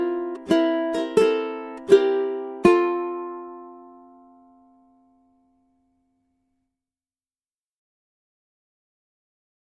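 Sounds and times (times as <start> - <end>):
ukulele melody: 0.0 - 6.0.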